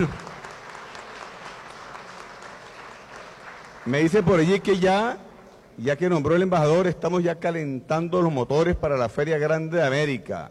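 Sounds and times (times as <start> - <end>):
speech: 0.0 - 0.2, 3.9 - 5.2, 5.8 - 10.4
audience applause: 0.0 - 5.1.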